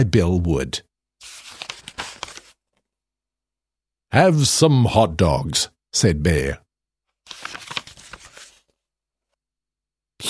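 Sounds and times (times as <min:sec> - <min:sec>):
speech: 0:00.0 - 0:01.4, 0:04.1 - 0:06.6
book page turning: 0:01.2 - 0:02.8, 0:07.2 - 0:08.8.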